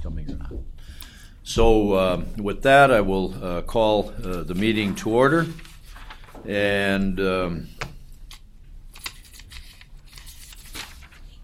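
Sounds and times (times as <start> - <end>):
speech: 1.5 - 5.7, 6.4 - 7.8
papers shuffled at a board meeting: 4.0 - 6.8, 7.7 - 11.4.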